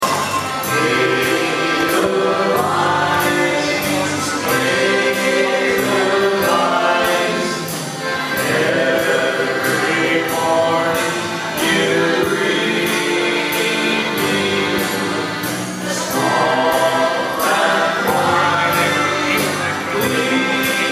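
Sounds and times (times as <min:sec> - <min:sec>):
German band playing: 0:00.0 - 0:20.9.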